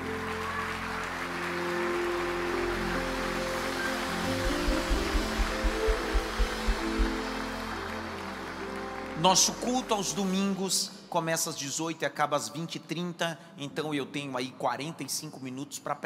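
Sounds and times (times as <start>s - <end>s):
audience applauding: 0.0s - 10.3s
speech: 9.2s - 16.0s.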